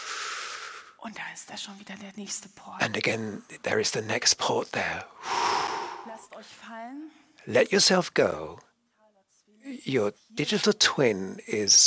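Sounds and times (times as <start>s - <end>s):
breath drawn in during a guided breathing exercise: 0.0s - 1.0s, 5.2s - 6.3s
speech: 1.0s - 8.7s, 9.6s - 11.8s.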